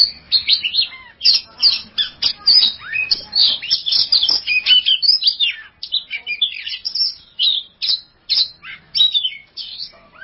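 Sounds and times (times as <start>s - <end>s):
Oriental magpie-robin song: 0.0s - 10.2s.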